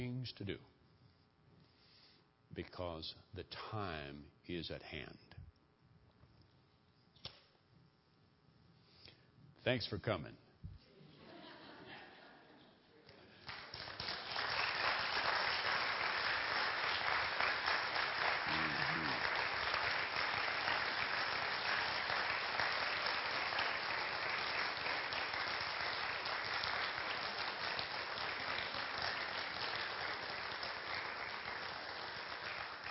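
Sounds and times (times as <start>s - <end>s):
speech: 0.0s - 0.8s, 2.5s - 5.3s, 9.6s - 10.4s
audience applause: 13.4s - 32.8s.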